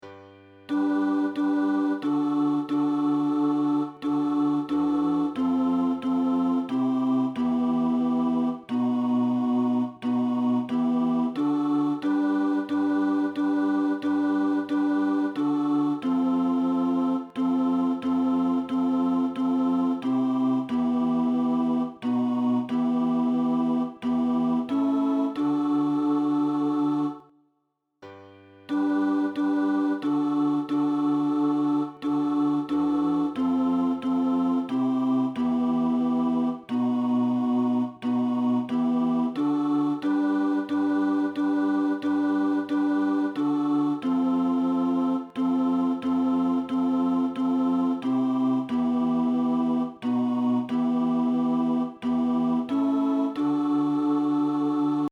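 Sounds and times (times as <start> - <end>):
tenor singing: 0.7 - 27.3, 28.7 - 55.0.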